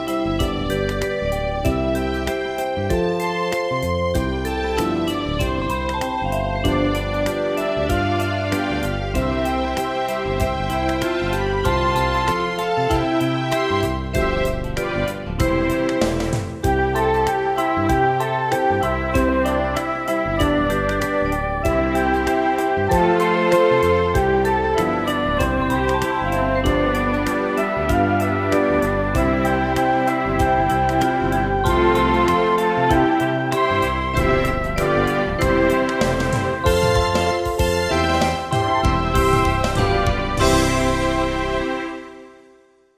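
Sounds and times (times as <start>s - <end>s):
instrumental music: 0.0s - 42.9s.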